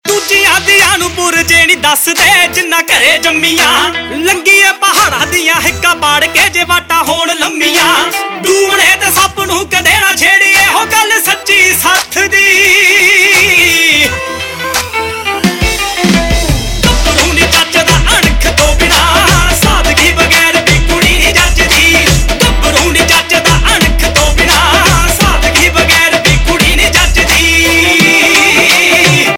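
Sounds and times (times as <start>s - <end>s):
Punjabi pop ringtone: 0.1s - 29.3s.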